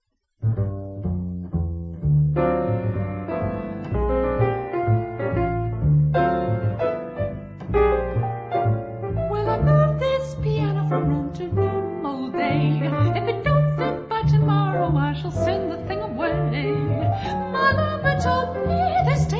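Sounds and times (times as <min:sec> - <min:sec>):
piano: 0:00.4 - 0:19.3.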